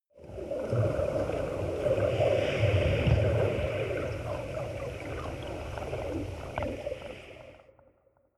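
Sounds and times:
water sound effects: 0.2 - 8.2.

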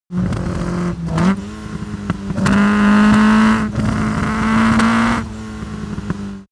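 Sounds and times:
Opel Kadett car accelerating and decelerating: 0.1 - 6.5.

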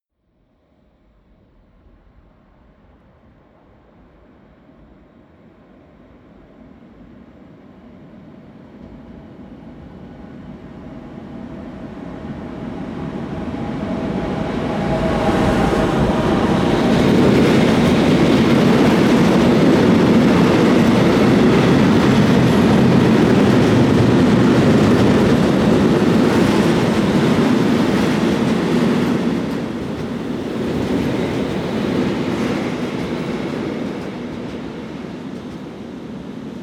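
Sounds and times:
freight train driving by fast: 7.4 - 36.6.

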